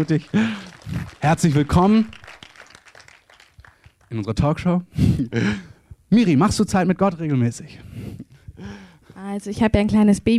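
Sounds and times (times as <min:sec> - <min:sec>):
speech: 0:00.0 - 0:02.2, 0:04.1 - 0:10.3
scattered applause from a small audience: 0:00.0 - 0:04.3.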